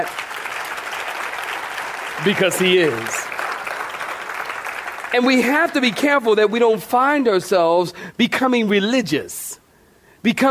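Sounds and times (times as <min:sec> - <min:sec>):
speech: 0:00.0 - 0:00.2, 0:02.2 - 0:03.3, 0:05.1 - 0:09.4, 0:10.2 - 0:10.4
audience clapping hands: 0:00.0 - 0:06.6.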